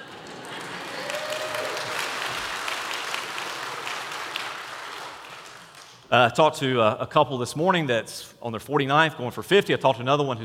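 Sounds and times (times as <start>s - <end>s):
audience applause: 0.0s - 6.1s
speech: 6.1s - 10.4s.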